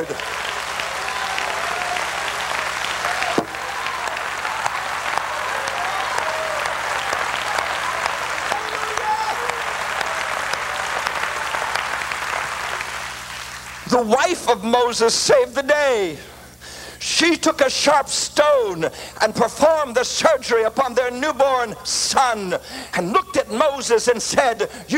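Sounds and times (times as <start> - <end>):
crowd shouting and cheering: 0.0 - 14.4
large audience clapping: 0.0 - 14.4
speech: 14.0 - 16.3, 17.0 - 24.9.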